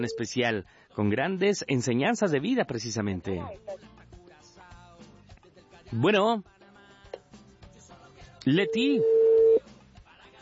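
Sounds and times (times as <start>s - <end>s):
telephone call tone beep: 0.0s - 0.3s, 8.5s - 9.6s
speech: 0.0s - 4.0s, 5.9s - 6.5s, 8.4s - 9.3s.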